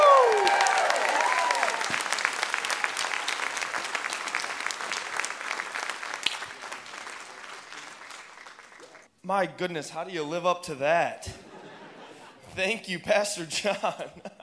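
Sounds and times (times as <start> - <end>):
high whooping shout: 0.0 - 2.1
church audience clapping: 0.0 - 9.1
speech: 9.3 - 11.4, 12.6 - 14.3
laughter: 11.2 - 12.9, 13.5 - 14.4.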